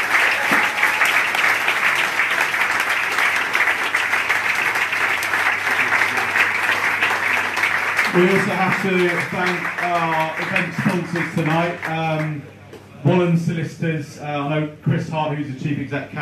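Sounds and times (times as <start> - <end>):
audience applause: 0.0 - 12.4
speech: 8.2 - 16.1.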